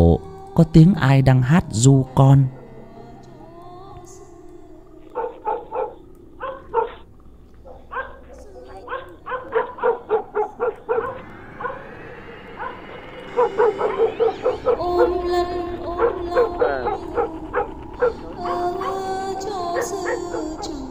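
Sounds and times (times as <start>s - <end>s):
speech: 0.2s - 2.6s
village dogs barking: 5.1s - 11.9s, 12.6s - 15.1s, 16.0s - 19.0s, 19.8s - 20.8s.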